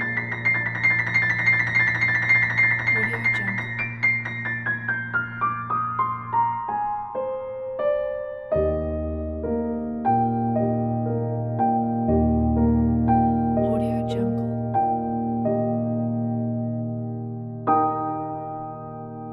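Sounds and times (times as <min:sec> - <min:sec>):
classical piano: 0:00.0 - 0:19.3.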